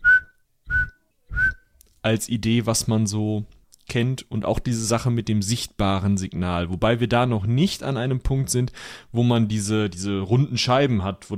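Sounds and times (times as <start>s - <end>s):
whistled imitation of an audible radar signal: 0.0s - 1.7s
speech: 2.0s - 11.3s.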